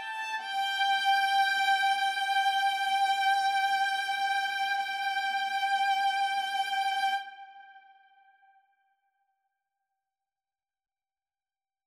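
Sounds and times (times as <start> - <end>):
intermezzo larghetto: 0.0 - 7.9.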